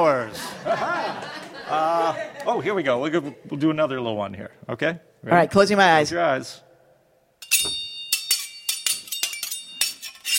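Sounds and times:
speech: 0.0s - 6.7s
laughter: 0.3s - 3.4s
pizza spatulas clashing together like swords: 7.4s - 10.3s.

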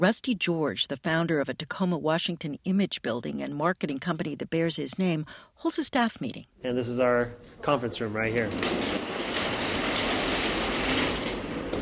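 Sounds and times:
speech: 0.0s - 9.1s
transparent garage door being pulled down: 7.4s - 11.8s.

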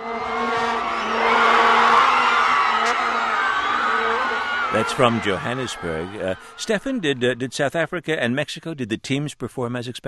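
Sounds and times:
steady buzzing horn drones: 0.0s - 6.6s
large crowd cheering in a city square: 0.0s - 7.7s
speech: 4.8s - 10.0s.

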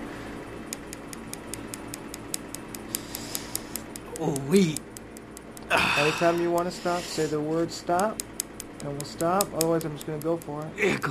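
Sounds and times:
low hum: 0.0s - 11.0s
tattoo removal laser pulses clicking: 0.7s - 10.7s
speech: 4.2s - 4.9s, 5.7s - 11.0s.

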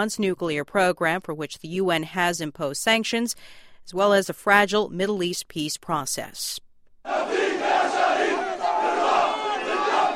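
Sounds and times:
speech: 0.0s - 7.4s
protesters shouting and chanting at a funeral: 7.1s - 10.1s.

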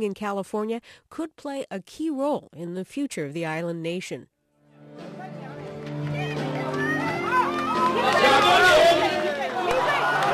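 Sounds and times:
speech: 0.0s - 4.3s
election rally crowd chanting: 5.4s - 10.3s.

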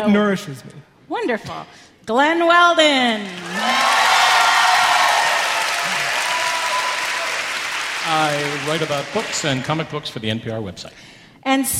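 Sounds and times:
speech: 0.0s - 3.9s, 8.0s - 11.7s
audience applause: 3.3s - 10.0s.

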